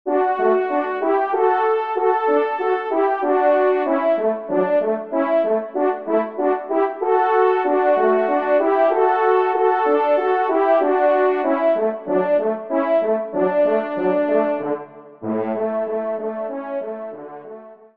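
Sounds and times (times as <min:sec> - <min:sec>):
horn duo ensemble: 0:00.1 - 0:17.8.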